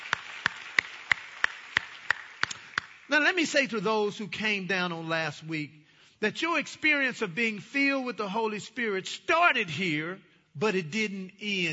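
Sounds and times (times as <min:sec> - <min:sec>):
audience applauding: 0:00.0 - 0:03.4
speech: 0:03.1 - 0:11.7.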